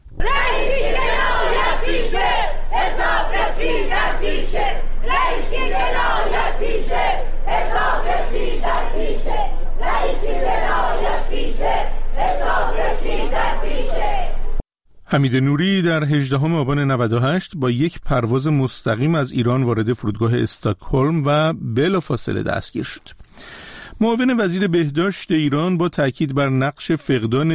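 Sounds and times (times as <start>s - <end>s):
protesters chanting slogans outside a courthouse: 0.1s - 14.5s
speech: 15.1s - 27.5s.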